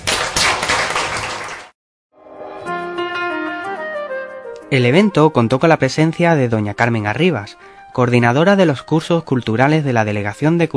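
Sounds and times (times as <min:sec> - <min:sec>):
audience applause: 0:00.0 - 0:01.8
speech: 0:04.7 - 0:10.7.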